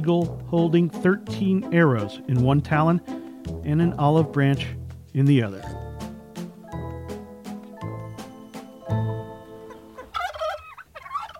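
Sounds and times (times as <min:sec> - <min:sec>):
speech: 0:00.0 - 0:05.8
turkey gobbling: 0:08.2 - 0:11.3.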